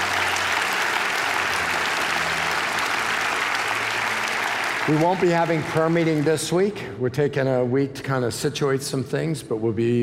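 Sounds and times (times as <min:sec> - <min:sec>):
audience cheering and applauding: 0:00.0 - 0:06.7
speech: 0:04.9 - 0:10.0.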